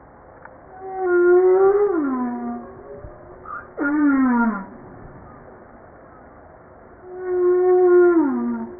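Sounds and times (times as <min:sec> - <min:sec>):
humpback whale descending harmonic moans: 0:00.7 - 0:05.4, 0:07.0 - 0:08.7.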